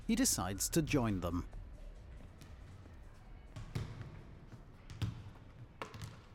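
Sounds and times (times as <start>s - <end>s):
speech: 0.1s - 1.6s
basketball bouncing in a gym as men shoot hoops: 2.3s - 6.3s.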